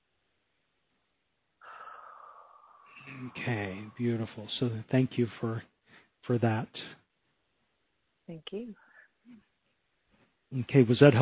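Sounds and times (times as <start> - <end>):
deep breath released in a long exhale: 1.6 - 4.4
speech: 3.1 - 7.0, 8.3 - 9.5, 10.5 - 11.2.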